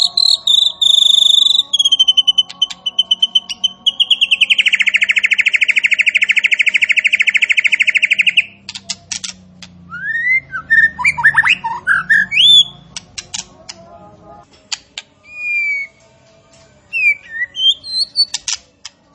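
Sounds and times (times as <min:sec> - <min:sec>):
striated grassbird song of sharp whistled notes and quick chirps: 0:00.0 - 0:08.6, 0:09.9 - 0:12.8, 0:15.2 - 0:16.0, 0:16.9 - 0:18.6.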